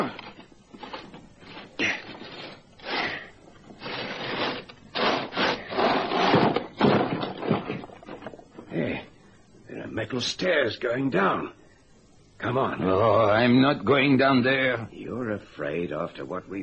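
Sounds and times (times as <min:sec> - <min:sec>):
speech: 0:00.0 - 0:00.2, 0:10.1 - 0:11.6, 0:12.4 - 0:16.6
heavy solid steel trapdoor grinding open: 0:01.8 - 0:08.3.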